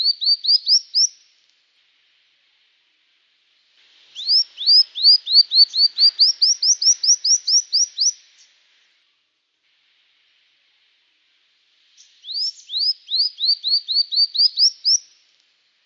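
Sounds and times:
brown-throated sunbird in full active song: 0.0 - 1.4, 4.0 - 9.0, 11.8 - 15.8.

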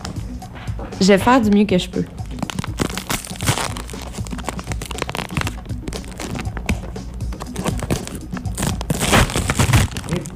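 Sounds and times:
speech: 1.0 - 2.2
crunching: 2.3 - 6.8, 7.4 - 10.3
plastic snack bag being torn open and crinkling: 2.3 - 6.8, 7.4 - 10.3.

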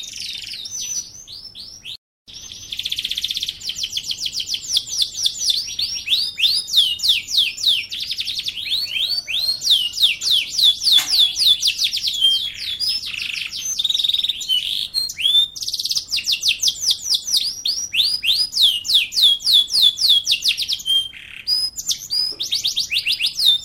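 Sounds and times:
bird singing: 0.0 - 23.6.

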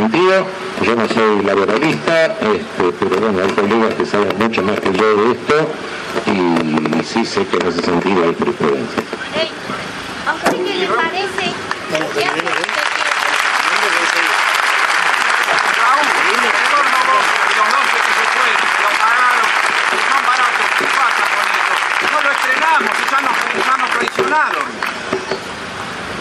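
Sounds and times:
speech: 0.0 - 12.6, 22.7 - 25.0
large crowd applauding at a public citizen-participation event: 11.3 - 25.1.

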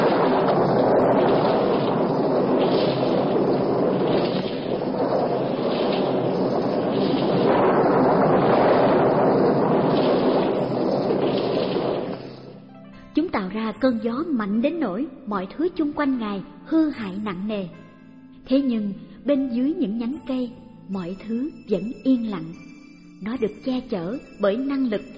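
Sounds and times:
thunderstorm with lightning strikes: 0.0 - 12.6
speech: 13.4 - 17.8, 18.5 - 22.6, 23.2 - 25.1.

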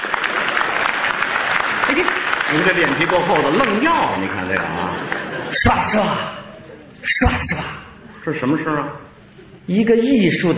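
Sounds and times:
audience applause: 0.0 - 6.8
laughter: 1.4 - 9.8
speech: 2.0 - 6.4, 7.0 - 9.0, 9.7 - 10.5.

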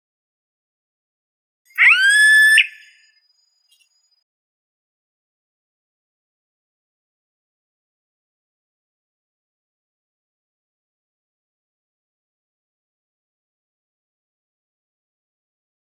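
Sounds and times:
yellow-headed caracara screaming: 1.8 - 2.9.

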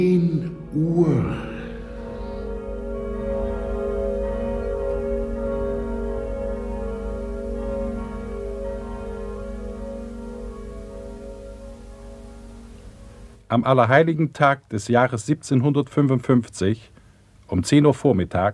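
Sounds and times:
speech: 0.0 - 1.5, 13.5 - 18.5
church bells ringing: 0.0 - 13.5.

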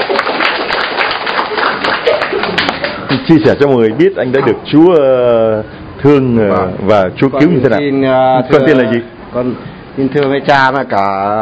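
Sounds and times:
audience applause at a religious gathering: 0.0 - 3.2
speech: 3.1 - 11.4.

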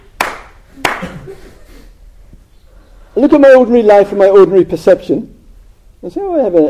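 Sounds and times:
hands clapping: 0.0 - 1.2
speech: 3.2 - 5.3, 6.0 - 6.6.

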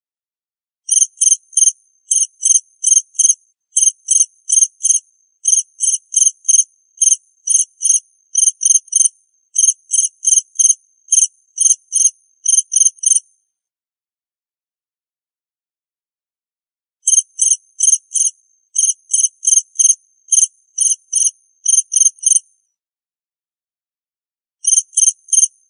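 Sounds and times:
cricket chirping: 0.9 - 13.3, 17.1 - 22.5, 24.6 - 25.6.

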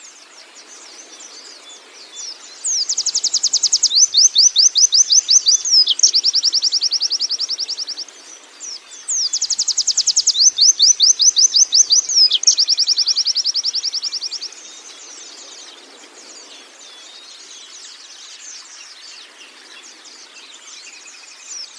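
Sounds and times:
canary song with fast high trills and rattling trill: 2.3 - 15.2.

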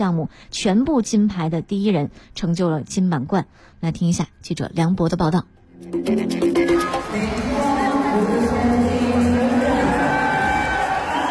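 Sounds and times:
speech: 0.0 - 7.4
crowd cheering at an Asian Games swimming competition: 7.3 - 11.2
crowd clapping at an Asian Games swimming competition: 8.5 - 11.2.

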